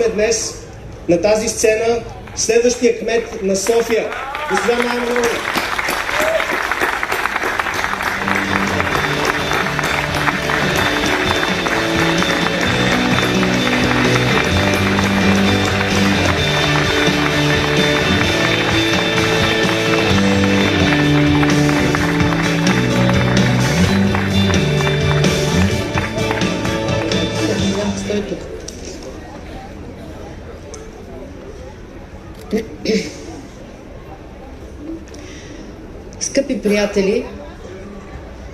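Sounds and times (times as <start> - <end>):
speech: 0.0 - 5.7, 36.9 - 37.2
crowd clapping: 3.3 - 28.8
loud backing music: 7.7 - 28.4.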